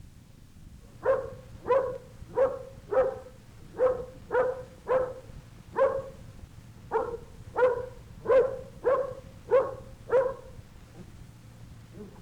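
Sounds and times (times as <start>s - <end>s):
dog barking: 1.0s - 6.2s, 6.9s - 10.6s.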